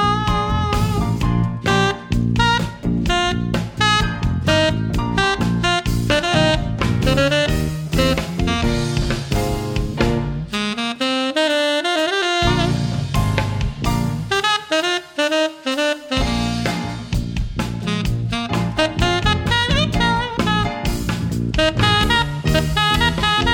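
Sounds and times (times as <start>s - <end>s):
rock tenor saxophone solo: 0.0s - 23.5s.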